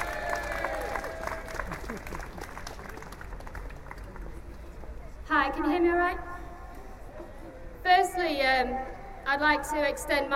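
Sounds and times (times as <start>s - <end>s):
audience applause: 0.0s - 4.4s
speech: 5.5s - 6.3s, 7.9s - 10.3s.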